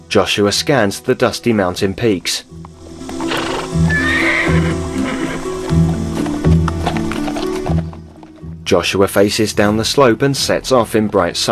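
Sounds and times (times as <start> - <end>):
speech: 0.1 - 2.7, 8.7 - 11.5
horse hooves on a dusty mountain trail: 1.7 - 11.5
horse whinny: 3.0 - 7.6.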